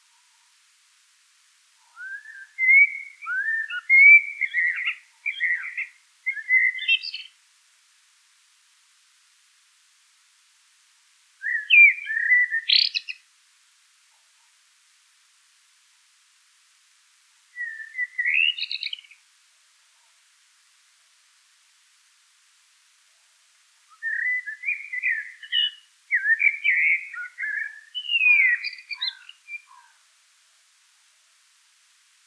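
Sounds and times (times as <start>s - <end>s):
Eurasian blackbird singing: 1.9s - 7.3s, 11.4s - 13.2s, 17.6s - 19.2s, 23.9s - 29.9s.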